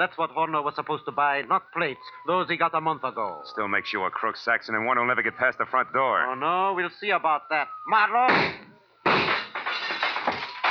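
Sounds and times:
speech: 0.0 - 8.7
gunshots fired in the dark: 8.3 - 10.6.

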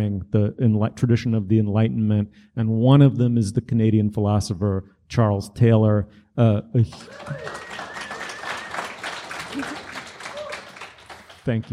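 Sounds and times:
speech: 0.0 - 7.9, 9.6 - 9.8, 11.4 - 11.7
audience applause: 6.9 - 11.7.

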